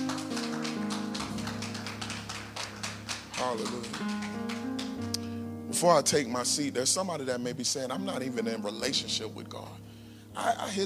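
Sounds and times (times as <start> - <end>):
audience clapping hands in praise in the sanctuary: 0.0 - 5.3
speech: 3.4 - 4.5, 5.8 - 9.8, 10.4 - 10.8.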